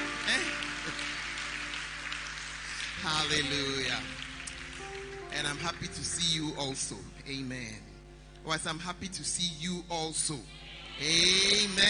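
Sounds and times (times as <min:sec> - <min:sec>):
audience clapping hands: 0:00.0 - 0:06.9
speech: 0:03.0 - 0:04.2, 0:05.4 - 0:11.8.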